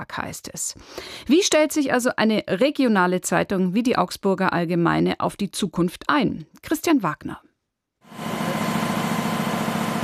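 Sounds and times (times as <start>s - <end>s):
speech: 0.0s - 7.5s
newspaper printing press running: 8.1s - 10.0s.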